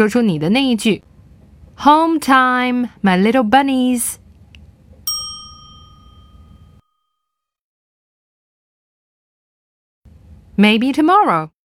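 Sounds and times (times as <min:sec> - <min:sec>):
speech: 0:00.0 - 0:01.1, 0:01.8 - 0:04.2, 0:10.6 - 0:11.6
ding chime cue: 0:05.1 - 0:07.5.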